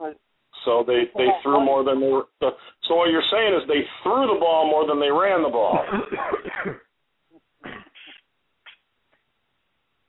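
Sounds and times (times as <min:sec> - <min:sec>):
speech: 0:00.7 - 0:06.9
person coughing: 0:05.7 - 0:06.8, 0:07.6 - 0:08.2.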